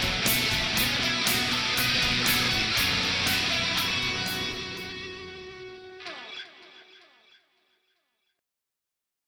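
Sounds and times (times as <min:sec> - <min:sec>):
residual noise: 0:00.0 - 0:05.9
rock riff: 0:00.0 - 0:07.4.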